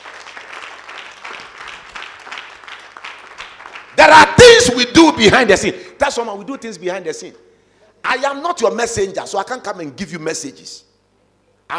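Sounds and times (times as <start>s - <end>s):
audience clapping: 0.0s - 4.4s
speech: 4.1s - 7.4s, 8.0s - 10.9s.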